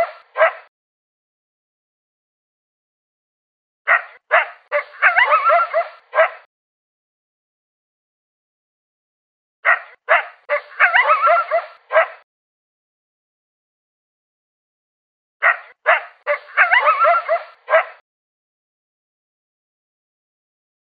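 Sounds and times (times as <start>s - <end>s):
coyote barking and yelping: 0.0s - 0.7s, 3.9s - 6.5s, 9.6s - 12.2s, 15.4s - 18.0s.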